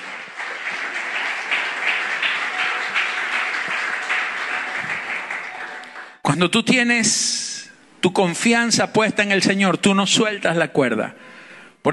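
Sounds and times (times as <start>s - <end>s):
audience applause: 0.0s - 6.2s
speech: 6.4s - 7.4s, 8.0s - 11.9s.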